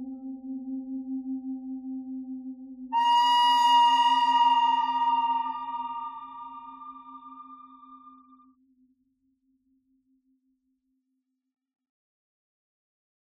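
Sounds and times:
pentatonic bird melody: 0:02.9 - 0:08.2.

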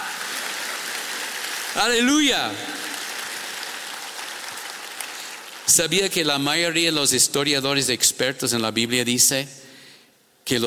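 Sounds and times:
congregation applause during a church service: 0:00.0 - 0:06.2
speech: 0:01.8 - 0:02.7, 0:05.7 - 0:09.7, 0:10.5 - 0:10.6.

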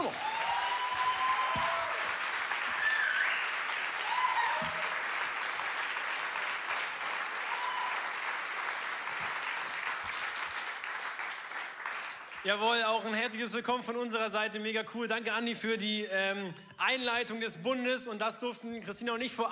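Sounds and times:
whistles and cheers: 0:00.0 - 0:05.0, 0:07.4 - 0:08.2
audience applause: 0:00.0 - 0:12.5
speech: 0:12.5 - 0:19.4.

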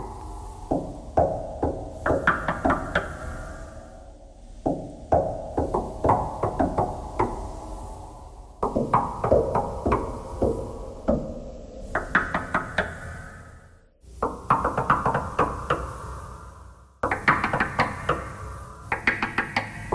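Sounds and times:
knocking thread noise: 0:00.7 - 0:03.2, 0:04.6 - 0:07.5, 0:08.6 - 0:13.0, 0:14.2 - 0:15.9, 0:17.0 - 0:18.3, 0:18.9 - 0:19.9.

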